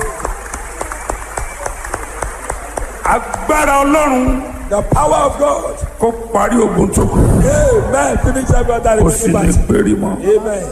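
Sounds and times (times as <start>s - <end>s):
crowd clapping rhythmically: 0.0s - 4.7s
speech: 3.1s - 10.7s.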